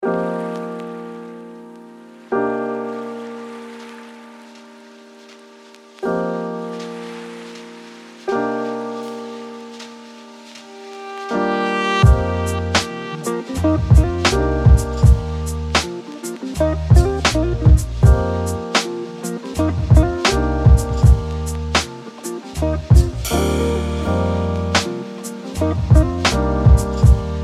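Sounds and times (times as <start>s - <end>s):
lo-fi beats: 6.0s - 27.4s.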